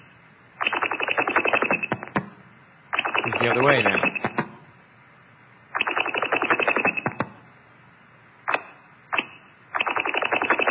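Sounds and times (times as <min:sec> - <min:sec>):
quick wink-back chirp on radio line: 0:00.0 - 0:02.2, 0:02.9 - 0:04.5, 0:05.7 - 0:07.3, 0:08.5 - 0:10.6
speech: 0:03.4 - 0:04.3.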